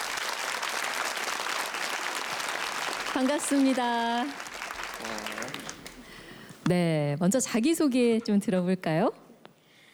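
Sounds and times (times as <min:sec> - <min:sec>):
audience applause: 0:00.0 - 0:06.6
speech: 0:03.1 - 0:04.4, 0:05.0 - 0:05.9, 0:06.7 - 0:09.2.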